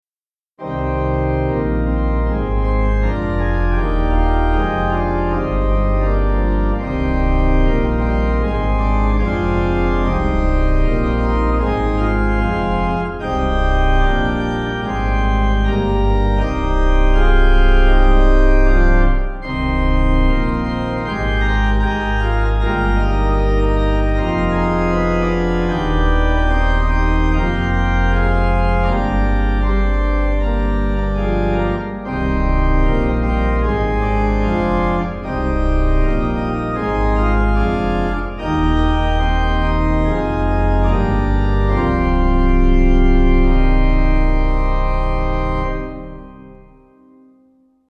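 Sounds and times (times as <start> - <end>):
pipe organ playing a Kyrie: 0.6 - 47.5.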